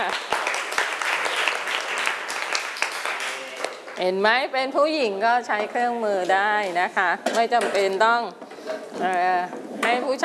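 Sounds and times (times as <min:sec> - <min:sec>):
hands clapping: 0:00.0 - 0:04.0
speech: 0:04.0 - 0:10.2.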